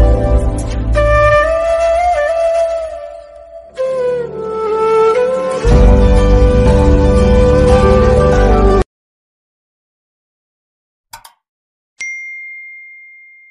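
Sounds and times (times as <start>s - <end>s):
romantic background music: 0.0s - 8.8s.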